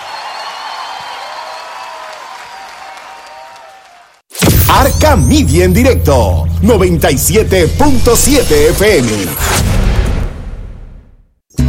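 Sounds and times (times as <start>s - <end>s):
crowd applause: 0.0s - 4.3s
speech: 4.9s - 9.7s.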